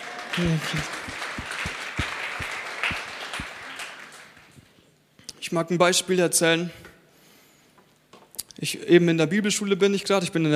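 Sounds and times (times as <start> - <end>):
audience clapping: 0.0 - 4.8
speech: 0.4 - 1.2, 5.5 - 6.9, 8.6 - 10.5.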